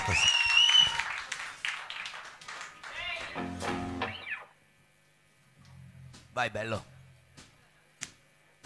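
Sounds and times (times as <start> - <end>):
audience applause: 0.0 - 3.6
speech: 0.1 - 0.3, 6.4 - 6.9.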